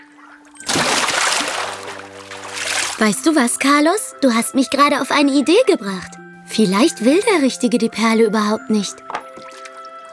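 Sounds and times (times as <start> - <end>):
water splash of someone going swimming: 0.6 - 3.4
speech: 3.0 - 9.1.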